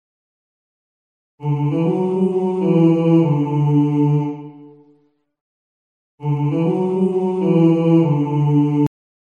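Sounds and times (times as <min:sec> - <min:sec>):
person singing: 0:01.4 - 0:04.8, 0:06.2 - 0:08.9.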